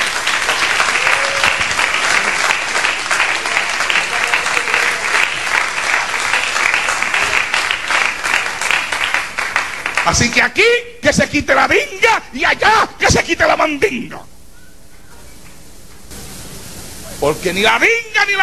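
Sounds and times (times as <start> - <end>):
audience applause: 0.0 - 10.4
speech: 10.1 - 14.3, 17.2 - 18.4.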